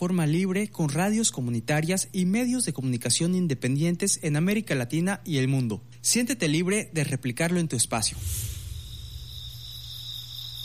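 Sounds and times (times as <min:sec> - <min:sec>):
speech: 0:00.0 - 0:08.6
night insects chirping in tropical jungle in the Maya forest: 0:07.8 - 0:10.6.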